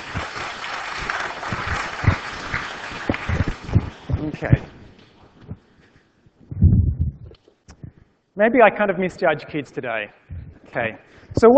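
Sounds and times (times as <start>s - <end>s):
audience applause: 0.0s - 4.6s
speech: 4.4s - 4.7s, 8.4s - 10.2s, 10.8s - 11.5s.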